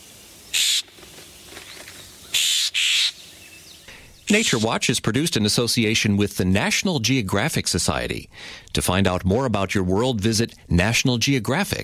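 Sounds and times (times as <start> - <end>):
scrub jay calling: 0.4 - 4.9
speech: 4.3 - 11.8.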